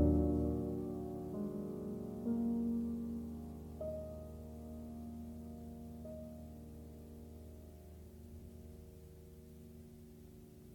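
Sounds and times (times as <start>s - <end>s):
melancholy music: 0.0s - 8.1s.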